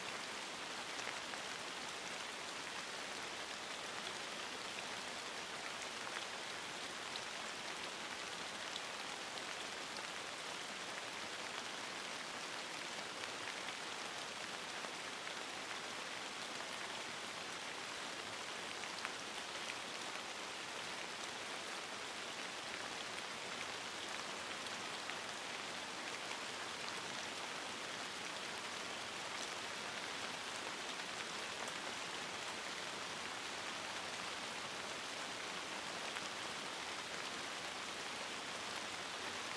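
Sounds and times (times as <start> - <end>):
light rain: 0.0 - 39.5.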